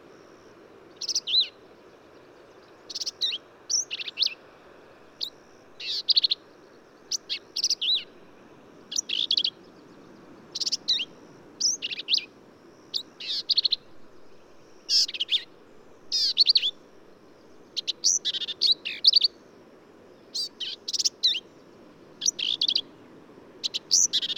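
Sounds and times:
Black-capped Vireo: 0.0s - 4.4s, 5.2s - 19.4s, 20.1s - 24.3s.

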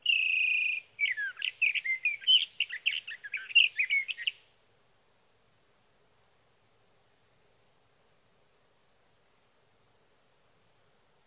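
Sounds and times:
sage thrasher song: 0.0s - 4.4s.

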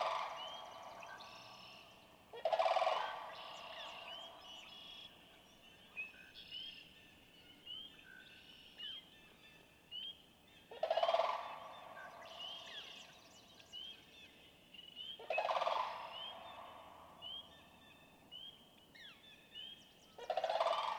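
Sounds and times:
sandhill crane calling: 0.0s - 5.4s, 10.7s - 13.1s, 15.1s - 17.6s, 20.2s - 20.9s.

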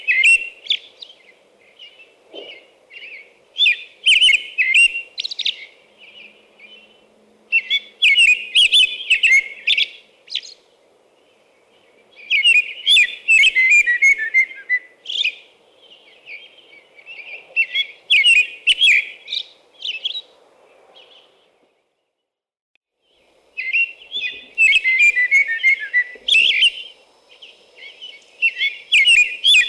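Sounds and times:
American robin caroling whistled phrases: 0.0s - 1.2s, 1.8s - 6.8s, 7.5s - 10.6s, 12.2s - 15.4s, 16.2s - 20.3s, 23.6s - 29.6s.

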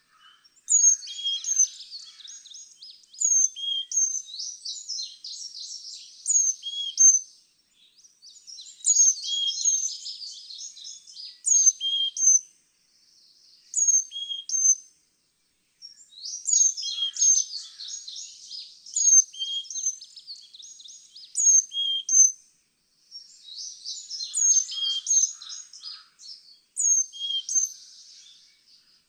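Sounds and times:
Carolina Chickadee calling: 0.1s - 7.2s, 8.4s - 12.4s, 13.6s - 14.8s, 15.8s - 22.4s, 23.2s - 28.9s.

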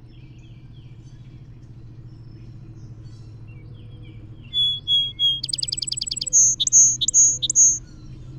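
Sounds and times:
Song Sparrow song: 2.1s - 7.8s.

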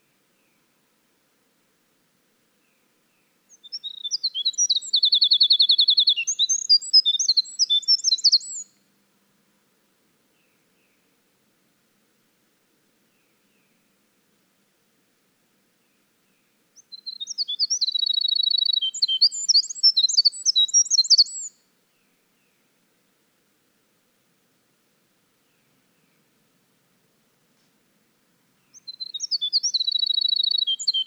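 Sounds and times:
winter wren song: 3.5s - 8.7s, 16.8s - 21.5s, 28.7s - 31.0s.

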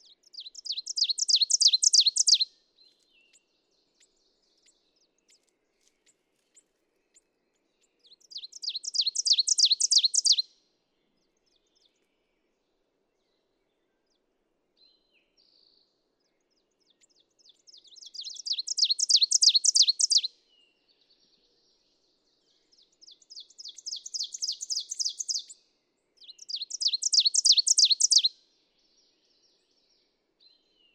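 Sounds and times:
ovenbird singing: 0.0s - 10.5s, 16.3s - 20.3s, 22.6s - 25.6s, 26.2s - 28.3s.

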